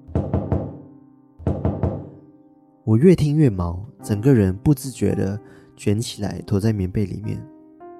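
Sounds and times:
rhythmic knocking on a door: 0.0 - 2.2
speech: 2.9 - 7.5.

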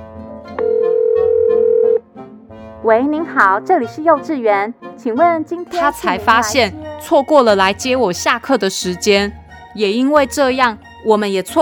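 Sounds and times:
soft music-like sounds: 0.0 - 11.6
telephone dial tone: 0.6 - 2.0
speech: 2.8 - 11.6.

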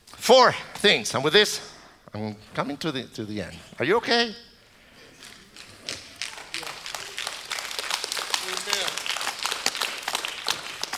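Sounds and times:
speech: 0.3 - 4.5
scattered sympathy clapping from small crowd: 5.2 - 10.9.

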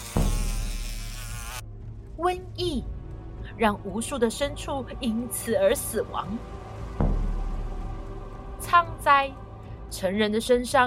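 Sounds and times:
swarm of flies buzzing: 0.0 - 1.6
speech: 2.2 - 3.0, 3.6 - 6.6, 8.7 - 10.8.

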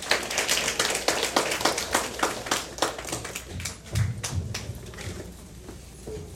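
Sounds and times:
audience applause: 0.0 - 4.7.

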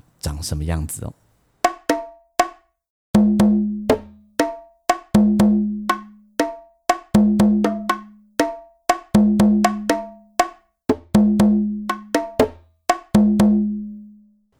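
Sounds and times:
speech: 0.3 - 1.2
bongo drums playing: 1.6 - 2.6, 3.2 - 13.8.

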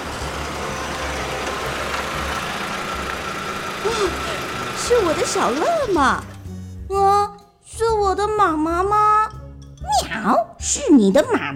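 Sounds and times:
car engine rumble: 0.0 - 6.6
speech: 3.8 - 6.3, 6.9 - 9.2, 10.2 - 11.5.

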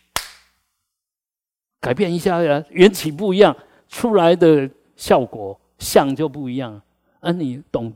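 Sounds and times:
hands clapping: 0.0 - 0.6
speech: 1.8 - 7.9.

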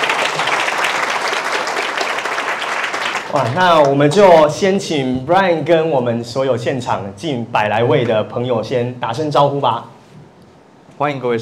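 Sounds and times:
audience applause: 0.0 - 4.0
speech: 3.3 - 9.9, 11.0 - 11.4.

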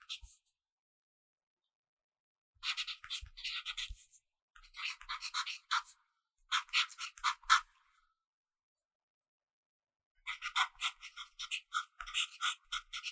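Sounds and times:
pencil writing and scribbling: 2.7 - 6.0, 6.5 - 7.7, 10.3 - 13.1.

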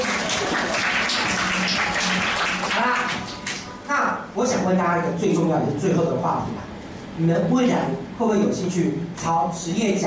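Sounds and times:
class applauding: 0.0 - 3.7
speech: 4.4 - 10.0.

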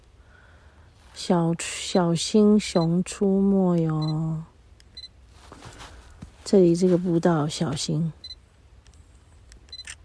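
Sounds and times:
low rumble: 0.0 - 10.0
speech: 1.2 - 4.5, 6.5 - 8.2
camera shutter clicks taking a photo: 9.6 - 10.0.

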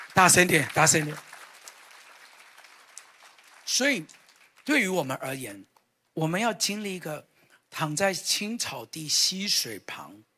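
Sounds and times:
crowd applauding: 0.0 - 5.0
speech: 0.2 - 1.3, 3.7 - 10.3.

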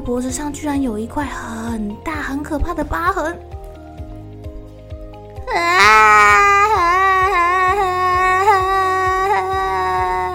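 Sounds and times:
speech: 0.0 - 3.6, 5.5 - 6.3
child crying loudly: 5.5 - 10.3.

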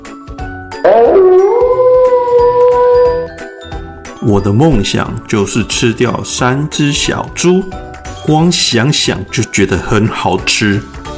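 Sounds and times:
wolf howling: 0.8 - 3.3
speech: 4.2 - 11.0.

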